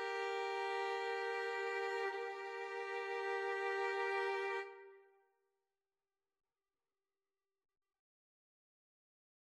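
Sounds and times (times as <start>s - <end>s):
violin and cello duet: 0.0s - 5.0s.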